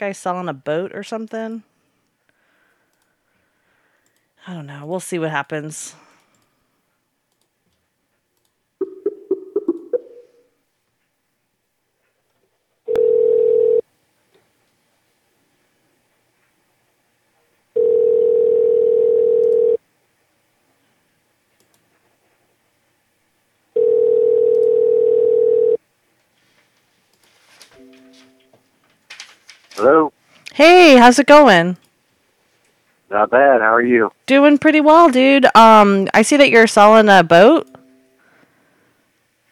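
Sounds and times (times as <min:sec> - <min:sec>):
speech: 0:00.0 - 0:01.7, 0:04.4 - 0:06.1, 0:29.8 - 0:31.8, 0:33.1 - 0:37.8
telephone tones while a call is placed: 0:12.9 - 0:13.8, 0:17.8 - 0:19.8, 0:23.8 - 0:25.8, 0:27.8 - 0:28.6.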